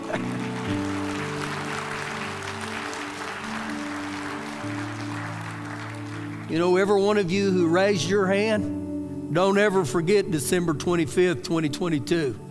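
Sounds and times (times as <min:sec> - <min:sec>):
audience clapping: 0:00.0 - 0:07.1
speech: 0:06.5 - 0:12.4.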